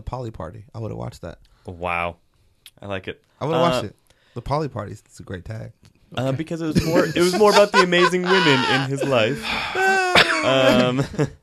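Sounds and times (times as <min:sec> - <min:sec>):
speech: 0:00.1 - 0:11.4
laughter: 0:06.8 - 0:11.4
person coughing: 0:08.3 - 0:11.1.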